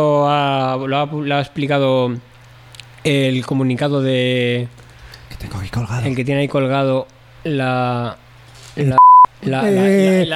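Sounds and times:
speech: 0:00.0 - 0:02.3, 0:03.0 - 0:04.8, 0:05.4 - 0:08.2, 0:08.8 - 0:10.3
high-pitched censor beep: 0:09.0 - 0:09.3.

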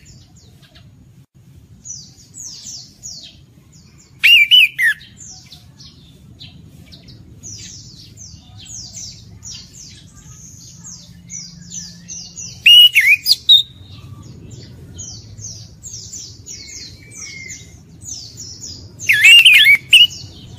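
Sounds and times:
orange-headed thrush wavering whistles and harsh rattling note: 0:12.6 - 0:13.8, 0:19.1 - 0:20.2.

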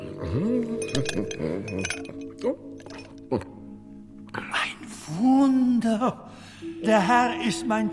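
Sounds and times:
speech: 0:00.2 - 0:02.7, 0:03.3 - 0:03.5, 0:05.1 - 0:07.9
ice cubes clinking into a glass: 0:00.8 - 0:03.1.

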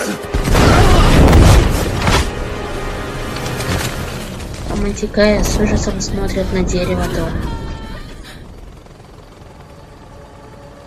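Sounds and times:
explosion blast wave: 0:00.3 - 0:02.3
speech: 0:04.8 - 0:07.6.

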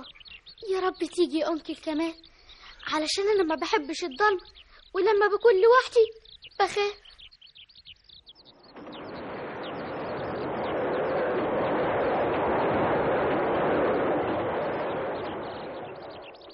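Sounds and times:
speech: 0:00.8 - 0:07.0
train passing: 0:08.7 - 0:16.5.

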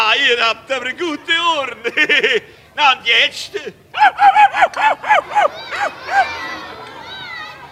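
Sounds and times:
speech: 0:00.3 - 0:06.8
laughter: 0:01.7 - 0:02.6, 0:04.0 - 0:07.1
man animal voice imitator imitating dog barking: 0:04.0 - 0:06.3.

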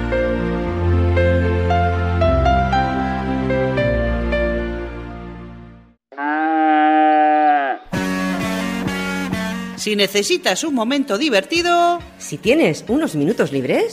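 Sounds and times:
gentle music: 0:00.0 - 0:06.0, 0:08.1 - 0:13.9
cow mooing: 0:06.1 - 0:07.9
speech: 0:09.8 - 0:13.9.

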